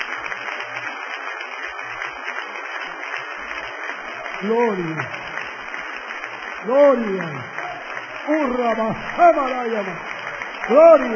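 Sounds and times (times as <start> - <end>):
congregation applauding at an evening church service: 0.0 - 11.1
speech: 4.4 - 5.3, 6.6 - 7.6, 8.2 - 10.1, 10.7 - 11.1.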